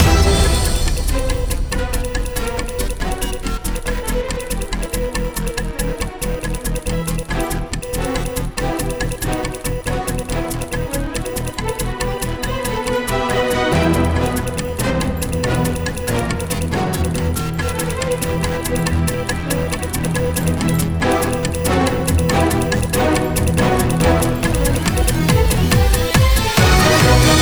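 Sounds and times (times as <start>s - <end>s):
title music loop: 0.0s - 27.4s.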